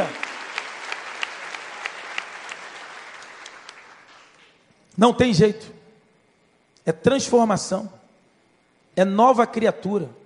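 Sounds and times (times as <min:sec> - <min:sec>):
audience applauding loudly: 0:00.0 - 0:04.6
speech: 0:05.0 - 0:05.8, 0:06.8 - 0:08.0, 0:09.0 - 0:10.2.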